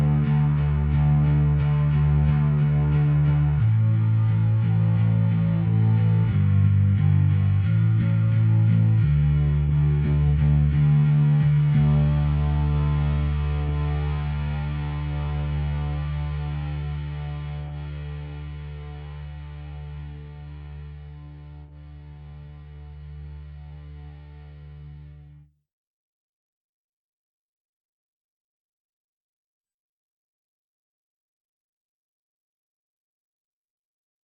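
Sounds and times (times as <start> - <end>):
bass: 0.0 - 25.5.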